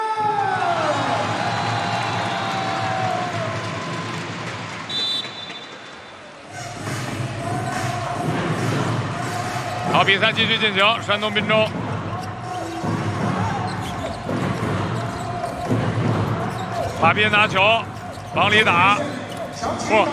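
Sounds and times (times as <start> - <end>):
crowd cheering: 0.0 - 20.1
speech: 10.0 - 11.9, 17.0 - 20.1.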